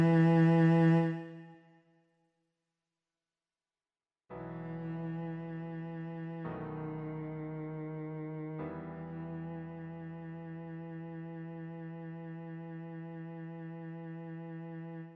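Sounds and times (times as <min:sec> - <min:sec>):
cello playing in E minor: 0:00.0 - 0:01.5, 0:04.6 - 0:15.1.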